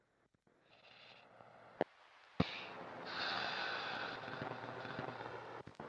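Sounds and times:
shallow breathing of a sleeping person: 0.6 - 1.6, 2.4 - 5.8
stomach rumbling: 1.8 - 5.8.

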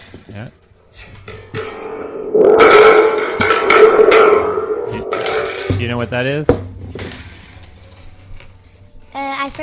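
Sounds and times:
speech: 0.3 - 1.4, 5.8 - 6.7
thunder stick toy metallic rumble: 1.7 - 6.2.

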